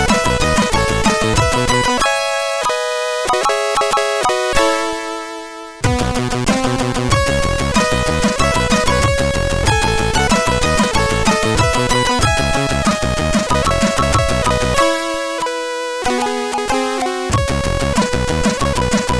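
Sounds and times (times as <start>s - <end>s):
C minor chiptune synth chord: 0.0s - 19.1s.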